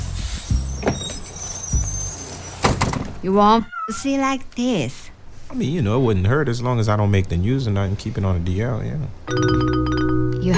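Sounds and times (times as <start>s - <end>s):
bus rumbling: 0.0s - 3.2s
bus brakes squealing: 0.0s - 3.5s
speech: 3.2s - 10.5s.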